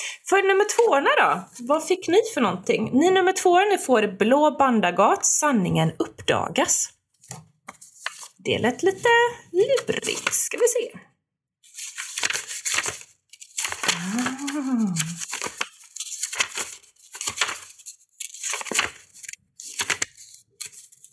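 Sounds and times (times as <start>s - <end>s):
speech: 0.3s - 7.5s, 8.4s - 11.1s, 14.0s - 15.2s
stuck card pages being pulled apart: 11.7s - 21.1s
person exclaiming: 13.9s - 15.2s.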